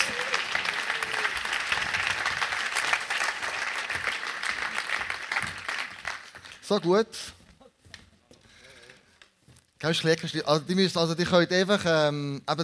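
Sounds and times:
audience applause: 0:00.0 - 0:06.7
speech: 0:06.7 - 0:07.4, 0:09.8 - 0:12.6.

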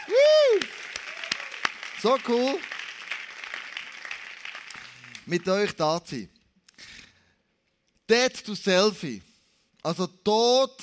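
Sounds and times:
audience applause: 0:00.0 - 0:05.4
speech: 0:02.0 - 0:02.7, 0:05.3 - 0:06.4, 0:08.1 - 0:10.8.

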